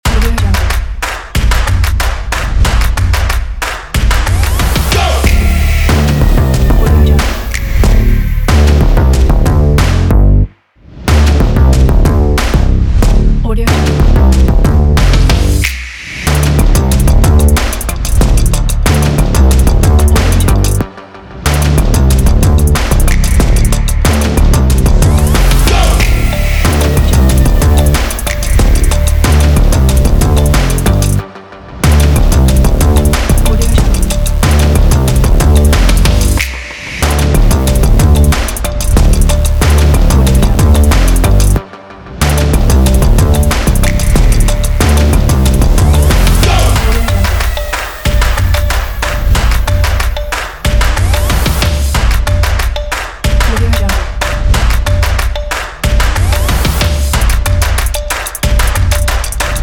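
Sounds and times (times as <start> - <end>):
energetic stomp percussion: 0.0 - 10.3, 11.1 - 20.9, 21.5 - 31.2, 31.8 - 41.6, 42.2 - 59.6.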